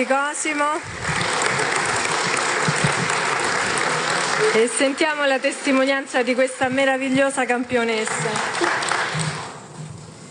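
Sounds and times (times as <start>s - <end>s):
speech: 0.0s - 2.3s, 4.4s - 9.3s
audience applause: 0.0s - 6.6s, 8.0s - 9.6s.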